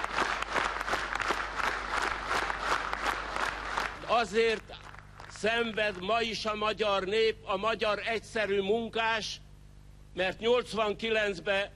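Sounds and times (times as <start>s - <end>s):
standing ovation applause: 0.0s - 6.1s
speech: 4.2s - 4.7s, 5.4s - 9.4s, 10.1s - 11.7s.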